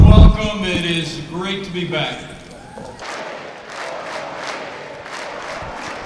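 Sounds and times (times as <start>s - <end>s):
speech: 1.1s - 3.0s
crowd cheering and chanting: 1.7s - 6.0s.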